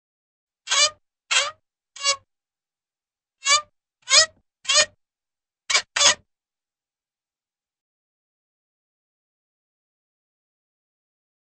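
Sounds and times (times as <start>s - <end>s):
creaking back and forth: 0.7s - 2.2s, 3.4s - 5.0s.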